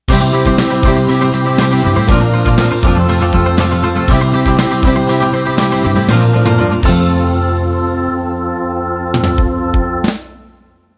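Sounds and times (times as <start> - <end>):
country sixteen-beat music ending: 0.1 - 10.6.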